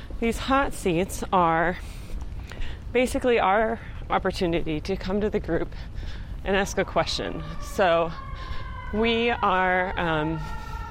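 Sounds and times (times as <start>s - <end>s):
speech: 0.2s - 2.0s, 2.9s - 10.8s
sirens wailing outside: 6.5s - 10.8s.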